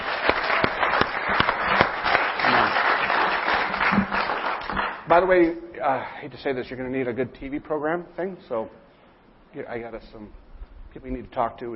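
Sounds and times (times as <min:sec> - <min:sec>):
church audience applauding their pastor: 0:00.0 - 0:05.2
speech: 0:05.2 - 0:08.8, 0:09.5 - 0:11.7.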